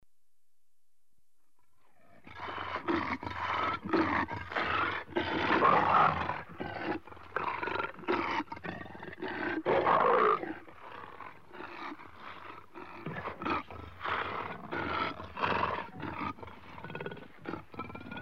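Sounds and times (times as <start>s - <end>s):
several leopards growling with harsh rasping strokes in Africa: 1.9s - 18.2s.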